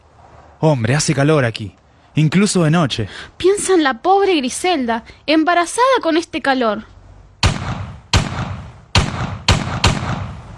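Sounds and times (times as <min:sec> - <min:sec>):
speech: 0:00.6 - 0:06.9
gunshots: 0:07.4 - 0:10.5.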